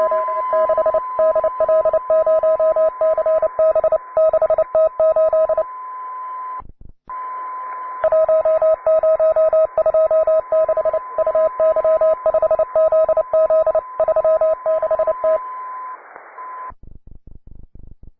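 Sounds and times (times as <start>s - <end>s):
CW Morse code beeps: 0.0s - 5.7s, 8.0s - 15.7s.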